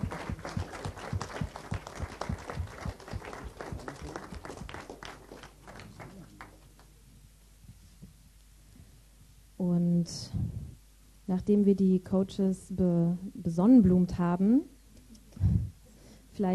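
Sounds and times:
audience applause: 0.0 - 6.9
speech: 9.6 - 10.6, 11.3 - 14.7.

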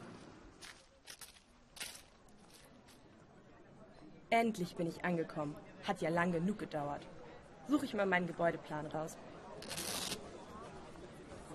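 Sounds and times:
faint footsteps walking through a big city: 0.0 - 3.1
speech: 4.3 - 9.7.

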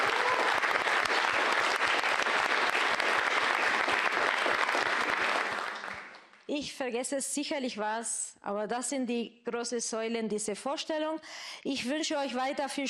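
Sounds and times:
audience applause: 0.0 - 6.3
speech: 6.6 - 12.8.

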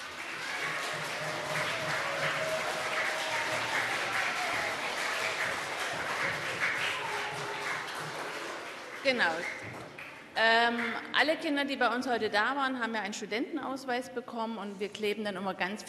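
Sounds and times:
audience applause: 0.0 - 11.0
speech: 9.1 - 9.6, 10.4 - 15.8.

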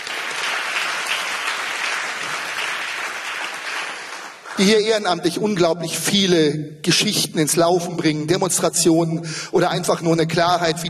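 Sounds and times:
audience applause: 0.0 - 4.6
speech: 4.6 - 10.8.

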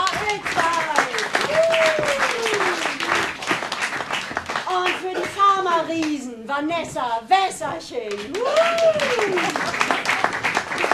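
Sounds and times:
audience applause: 0.0 - 5.5, 8.2 - 10.9
speech: 5.9 - 9.7.

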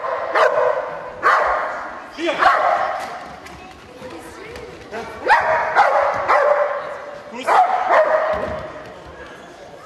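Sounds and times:
shelter dog barking during a demonstration: 0.0 - 1.8, 2.4 - 2.9, 5.2 - 8.4.

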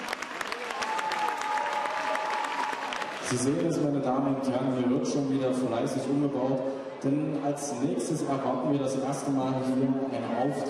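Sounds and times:
audience applause: 0.0 - 3.6
speech: 3.3 - 10.6.

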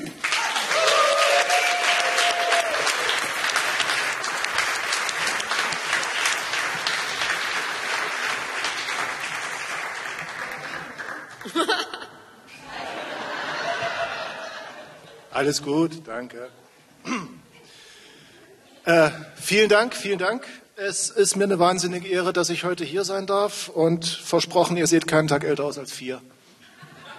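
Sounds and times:
audience applause: 0.0 - 12.0
laughter: 10.6 - 15.3, 26.6 - 27.1
speech: 15.4 - 17.3, 18.9 - 26.4.

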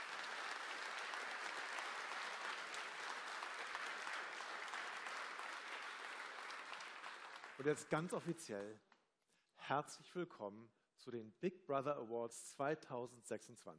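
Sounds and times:
audience applause: 0.0 - 8.0
speech: 7.6 - 8.9, 9.7 - 13.7.

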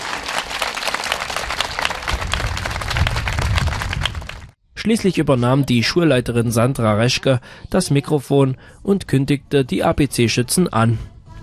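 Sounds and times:
audience applause: 0.0 - 4.6
speech: 4.8 - 11.1.

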